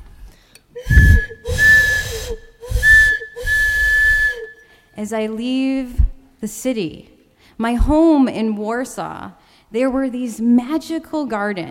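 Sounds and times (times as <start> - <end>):
train whistle: 0.8 - 4.7
train hiss: 0.9 - 4.4
speech: 5.0 - 11.6.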